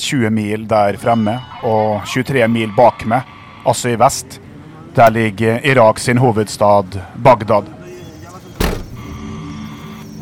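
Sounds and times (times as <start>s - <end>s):
speech: 0.0s - 4.4s, 5.0s - 7.8s
white armoured Toyota SUV engine and road rumble driving through the desert: 8.4s - 9.3s
sharp loud thump: 8.6s - 9.2s.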